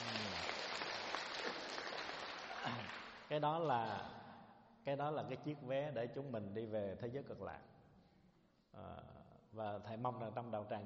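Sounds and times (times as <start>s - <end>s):
audience applause: 0.0s - 3.3s
speech: 2.6s - 4.2s, 4.8s - 7.8s, 8.7s - 10.8s.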